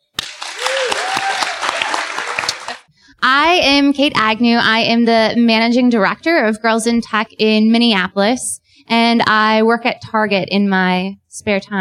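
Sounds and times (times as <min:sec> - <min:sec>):
audience round of applause: 0:00.2 - 0:02.9
speech: 0:03.2 - 0:11.7.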